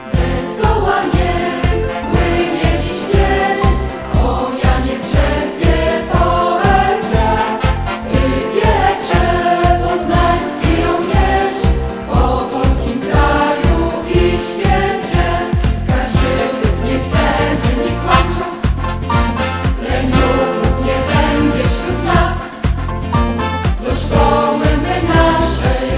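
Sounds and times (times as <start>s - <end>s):
school hymn: 0.1s - 22.8s, 23.7s - 25.9s.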